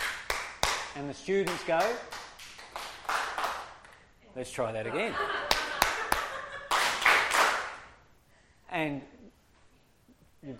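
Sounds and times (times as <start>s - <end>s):
rhythmic hand clapping pattern: 0.0s - 4.0s, 5.4s - 7.9s
speech: 1.0s - 2.2s, 4.4s - 5.4s, 8.7s - 9.2s
laughter: 4.8s - 6.9s.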